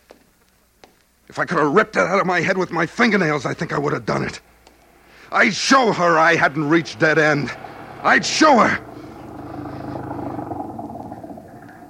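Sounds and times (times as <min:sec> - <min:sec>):
speech: 0:01.3 - 0:04.6, 0:05.3 - 0:08.9
old flivver car engine chugging: 0:05.2 - 0:11.8.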